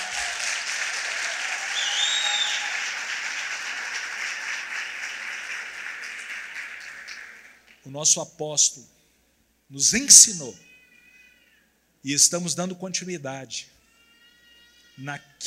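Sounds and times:
audience applauding: 0.0s - 7.8s
whistle: 1.7s - 2.7s
speech: 7.9s - 9.0s, 9.7s - 10.7s, 12.0s - 13.7s, 15.0s - 15.4s.

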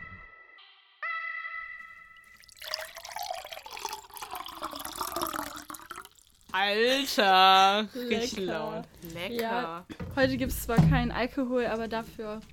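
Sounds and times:
bright ringing glassy tones: 2.1s - 6.3s
tap water pouring into a glass: 2.2s - 6.6s
speech: 6.6s - 12.5s.

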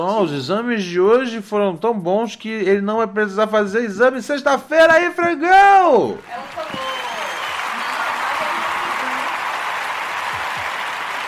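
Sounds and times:
speech: 0.0s - 6.6s
audience applauding: 6.2s - 11.2s.

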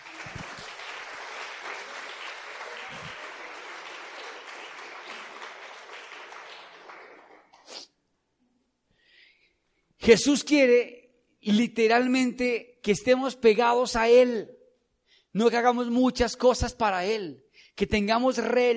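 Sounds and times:
audience applause: 0.0s - 7.6s
speech: 10.1s - 14.6s, 15.4s - 18.7s.

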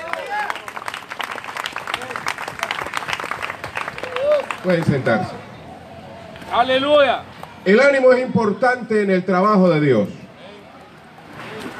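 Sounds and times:
audience applause: 0.0s - 5.2s
people cheering: 0.0s - 5.5s
speech: 4.6s - 5.4s, 6.5s - 10.2s.

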